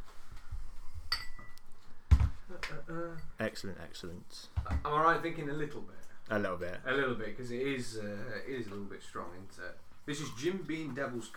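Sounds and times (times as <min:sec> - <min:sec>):
bright glassy clinks: 0:01.1 - 0:01.6
glass set down with a knock: 0:01.1 - 0:01.6
speech: 0:02.7 - 0:11.3.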